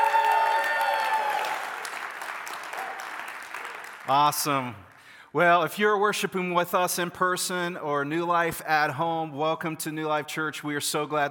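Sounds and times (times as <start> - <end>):
audience cheering for Jesus: 0.0 - 4.0
speech: 4.1 - 11.2.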